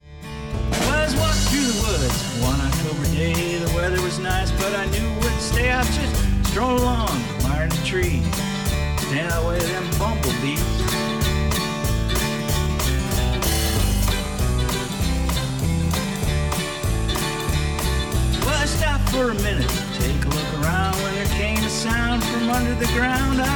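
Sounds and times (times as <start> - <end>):
blues music: 0.0 - 23.5.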